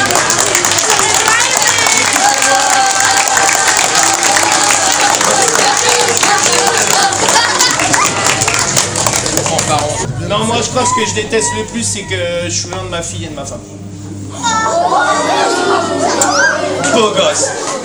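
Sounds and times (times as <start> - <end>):
audience applause: 0.0 - 10.1
laughter: 0.0 - 11.7, 14.2 - 17.8
speech: 10.8 - 15.2, 17.0 - 17.7.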